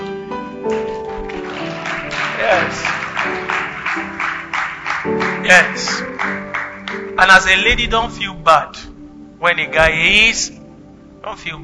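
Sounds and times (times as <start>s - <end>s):
sparse clapping from church audience: 0.7s - 7.8s
speech: 5.5s - 6.0s, 7.2s - 10.6s, 11.2s - 11.6s.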